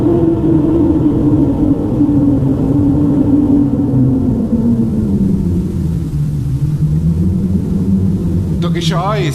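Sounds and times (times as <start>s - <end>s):
rushing roar of a mighty storm wind: 0.0s - 9.3s.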